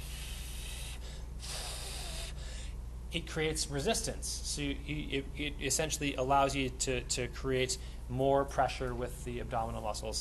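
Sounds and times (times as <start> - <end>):
pursed-lip breathing as taught to emphysema patients: 0.0 - 2.8
low steady hum: 0.0 - 10.2
speech: 3.1 - 10.2.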